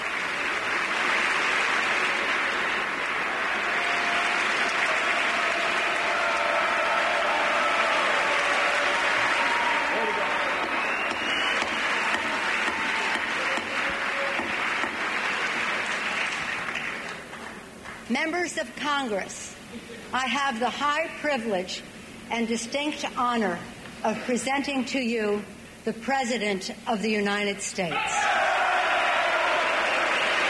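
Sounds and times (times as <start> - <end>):
applause from a large crowd in congressional chamber: 0.0 - 18.0, 28.0 - 30.4
speech: 18.2 - 19.5, 20.1 - 28.3.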